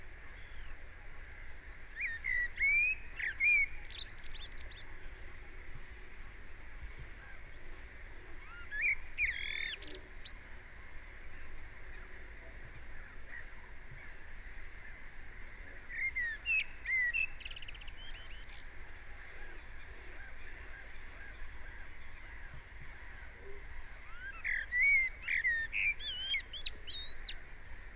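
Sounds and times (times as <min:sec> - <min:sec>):
steady background hiss: 0:00.0 - 0:27.9
common blackbird singing: 0:02.0 - 0:04.9, 0:08.4 - 0:10.5, 0:15.8 - 0:19.0, 0:23.7 - 0:27.4.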